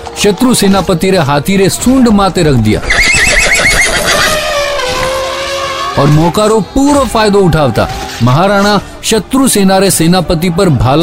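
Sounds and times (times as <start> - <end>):
speech: 0.2 - 3.1, 6.0 - 11.0
horse whinnying: 2.8 - 6.0.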